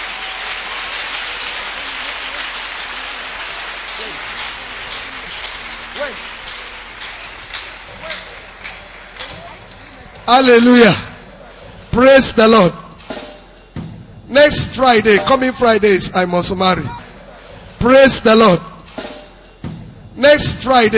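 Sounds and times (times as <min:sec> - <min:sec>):
audience clapping hands: 0:00.0 - 0:11.3
speech: 0:10.3 - 0:11.0, 0:12.0 - 0:12.8, 0:14.4 - 0:17.0, 0:17.8 - 0:18.7, 0:20.4 - 0:20.9.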